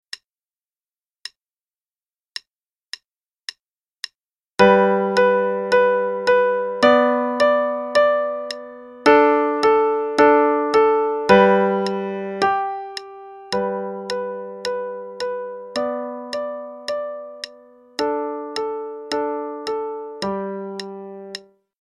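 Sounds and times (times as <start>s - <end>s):
play-along piano piece: 4.6s - 21.5s.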